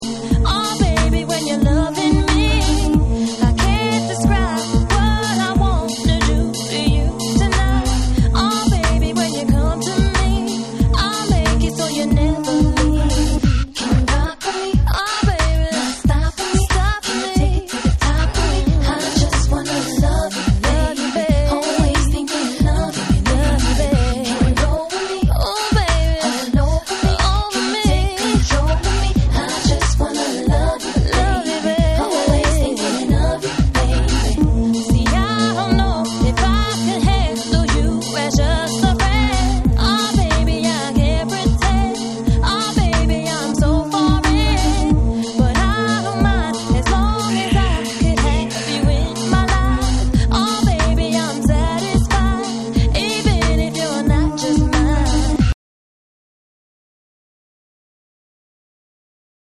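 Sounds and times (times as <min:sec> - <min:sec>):
reggae dub music: 0:00.0 - 0:55.6.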